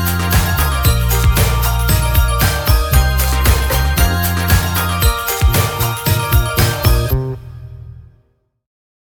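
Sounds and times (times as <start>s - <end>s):
pop breakbeat: 0.0s - 7.3s.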